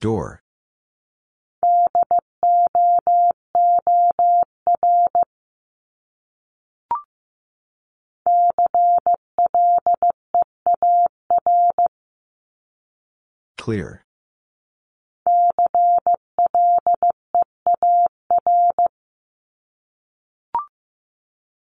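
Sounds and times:
speech: 0:00.0 - 0:00.4, 0:13.6 - 0:14.0
Morse code beeps at 15 words per minute: 0:01.6 - 0:05.3, 0:08.3 - 0:11.8, 0:15.3 - 0:18.9.

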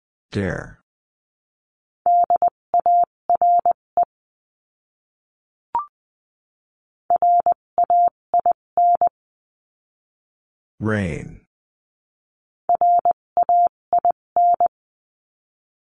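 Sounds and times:
speech: 0:00.3 - 0:00.8, 0:10.8 - 0:11.4
Morse code beeps: 0:02.1 - 0:03.8, 0:07.1 - 0:09.1, 0:12.7 - 0:14.7.

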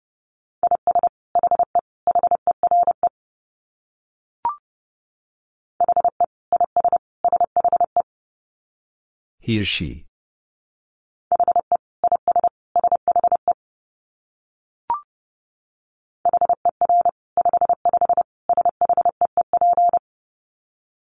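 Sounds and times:
Morse code tones at 30 wpm: 0:00.6 - 0:03.0, 0:05.8 - 0:08.0, 0:11.3 - 0:13.5, 0:16.3 - 0:20.0
speech: 0:09.5 - 0:10.1.

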